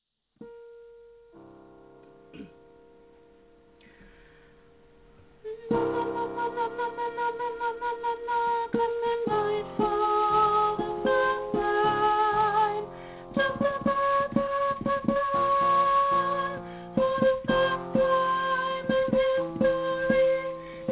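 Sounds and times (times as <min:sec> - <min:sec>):
soprano voice: 0:05.4 - 0:20.8.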